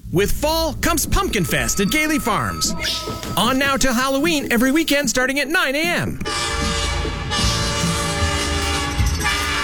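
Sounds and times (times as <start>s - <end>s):
speech: 0.1s - 6.7s
train horn blasting: 6.3s - 9.6s.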